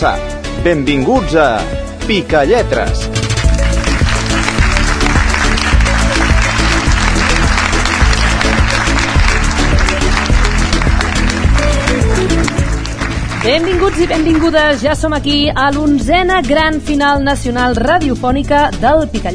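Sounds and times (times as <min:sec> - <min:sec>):
speech: 0:00.0 - 0:03.2, 0:13.4 - 0:19.3
audience applause at a children's spelling-game show final in Barcelona: 0:03.2 - 0:15.1.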